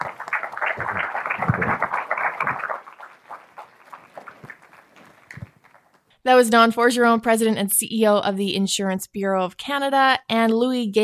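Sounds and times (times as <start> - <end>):
audience applause: 0.0 - 6.0
speech: 6.3 - 11.0.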